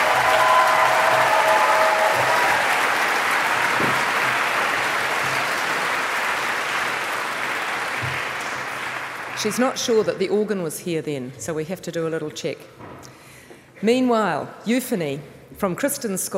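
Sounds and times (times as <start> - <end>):
town hall audience applause welcoming residents from Somerset: 0.0 - 9.6
speech: 9.4 - 13.2, 13.8 - 16.3.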